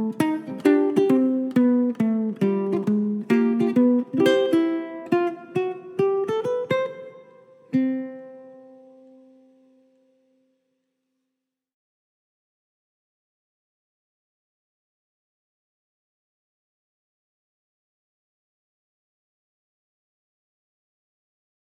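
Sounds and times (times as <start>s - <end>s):
ukulele: 0.0s - 10.3s.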